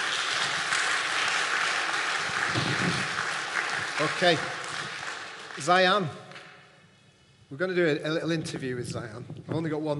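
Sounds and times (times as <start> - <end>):
audience applause: 0.0 - 6.2
speech: 4.0 - 4.6, 5.6 - 6.3, 7.5 - 9.9.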